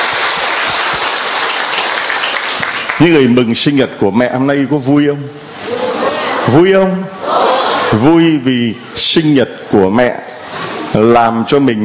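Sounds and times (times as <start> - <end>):
Catholic congregation applause celebrating Mary's birthday: 0.0 - 3.4
speech: 3.0 - 5.5, 6.5 - 10.3, 10.9 - 11.8.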